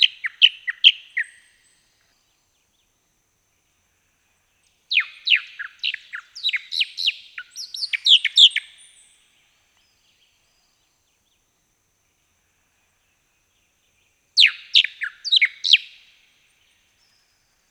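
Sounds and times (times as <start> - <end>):
Bahama Mockingbird singing: 4.9 - 8.9, 14.4 - 15.9.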